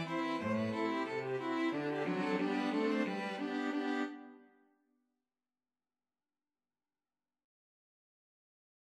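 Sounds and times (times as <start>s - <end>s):
string quartet playing a hornpipe: 0.0s - 4.4s.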